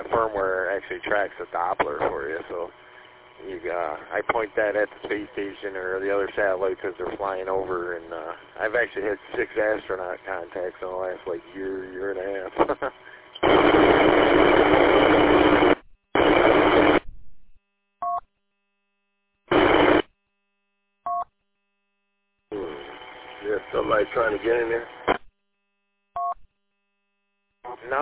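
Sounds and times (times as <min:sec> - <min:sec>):
garbled voice over the radio: 0:00.0 - 0:02.7, 0:03.4 - 0:13.2, 0:22.5 - 0:24.9, 0:27.6 - 0:28.0
radio static from a keyed-up transmitter: 0:00.0 - 0:17.1, 0:19.5 - 0:20.1, 0:22.5 - 0:25.2, 0:27.7 - 0:28.0
speech: 0:00.2 - 0:14.1, 0:23.7 - 0:25.2.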